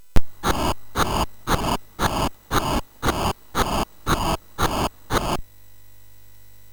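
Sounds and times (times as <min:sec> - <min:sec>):
MOS6581R3 SID chip synth sample: 0:00.4 - 0:05.4.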